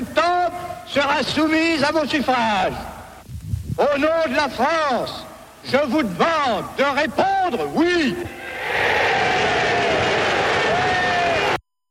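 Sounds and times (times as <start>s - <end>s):
speech: 0.9s - 2.9s, 3.8s - 8.9s
crowd responding with cheers: 8.3s - 11.6s.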